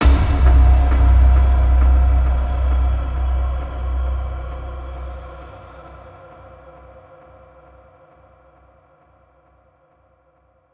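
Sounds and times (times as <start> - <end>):
impact: 0.0 - 6.0.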